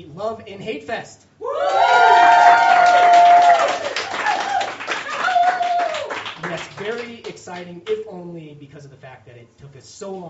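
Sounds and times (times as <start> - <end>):
speech: 0.0 - 3.1, 6.8 - 10.2
whoops and high whistle-like calls: 1.4 - 6.2
live audience cheering and clapping at the Love and Hate Fest: 1.4 - 7.2.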